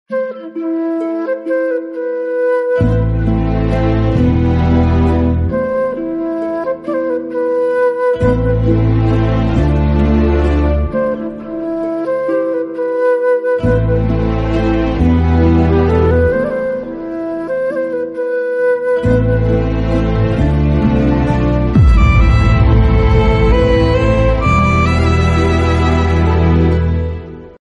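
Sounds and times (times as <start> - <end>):
instrumental background music: 0.1 - 27.6.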